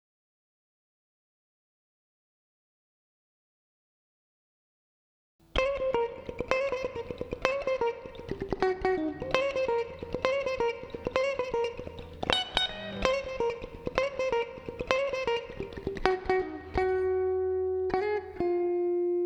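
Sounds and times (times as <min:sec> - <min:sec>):
funk music: 0:05.6 - 0:19.2.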